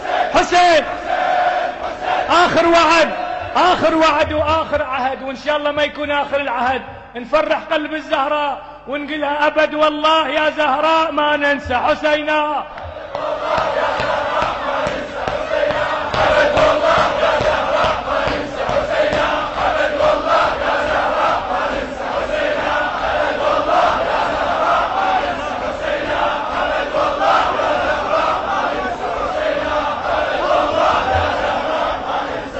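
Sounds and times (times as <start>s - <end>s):
large crowd shouting a chant in unison: 0.0s - 4.2s, 12.8s - 32.5s
speech: 0.4s - 1.0s, 2.3s - 12.8s.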